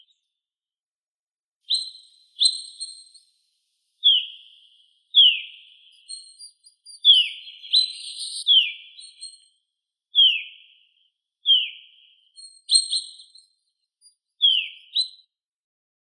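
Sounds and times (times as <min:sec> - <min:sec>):
Fringilla coelebs chaffinch singing: 0:01.7 - 0:03.4, 0:04.0 - 0:09.5, 0:11.5 - 0:13.5, 0:14.4 - 0:15.2.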